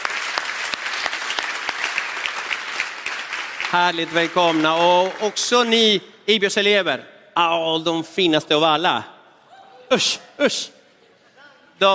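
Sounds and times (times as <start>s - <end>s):
audience applause: 0.0s - 5.7s
speech: 3.7s - 9.1s, 9.9s - 10.8s.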